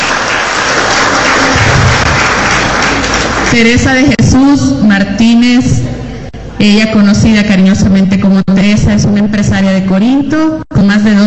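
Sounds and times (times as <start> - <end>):
audience applause: 0.0 - 3.7
speech: 3.5 - 6.0, 6.6 - 11.2.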